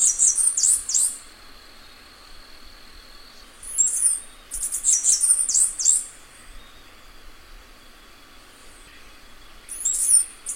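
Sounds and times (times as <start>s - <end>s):
bamboo cicada song: 0.0s - 10.5s.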